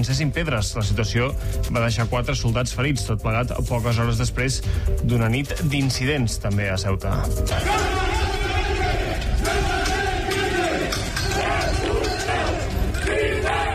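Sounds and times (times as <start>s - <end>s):
speech: 0.0s - 8.1s
crowd shouting during riot: 7.5s - 13.7s.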